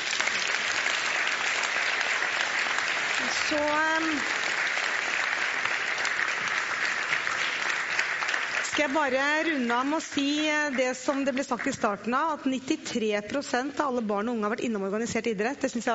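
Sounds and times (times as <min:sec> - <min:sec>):
audience applauding the panel: 0:00.0 - 0:11.8
speech: 0:03.2 - 0:04.4, 0:08.8 - 0:15.9.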